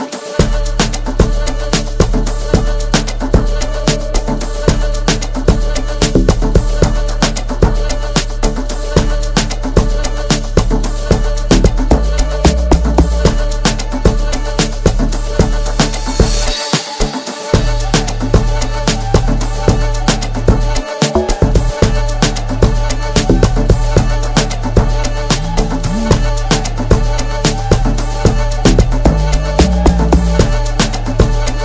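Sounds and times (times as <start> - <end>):
ambience: 0.4 - 31.6.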